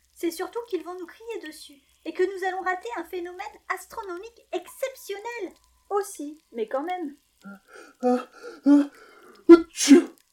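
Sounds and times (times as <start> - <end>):
speech: 0.2 - 10.2
stifled muffled sneeze: 9.5 - 10.2.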